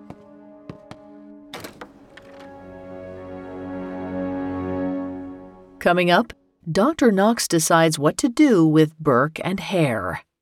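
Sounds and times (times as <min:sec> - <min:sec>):
footsteps approaching: 0:00.0 - 0:02.7
speech: 0:05.8 - 0:10.3.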